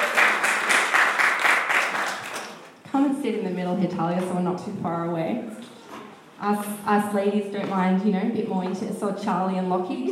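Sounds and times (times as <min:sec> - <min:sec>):
audience applause welcoming a speaker at a Sunday storytelling event: 0:00.0 - 0:02.6
speech: 0:03.0 - 0:05.6, 0:06.4 - 0:10.1.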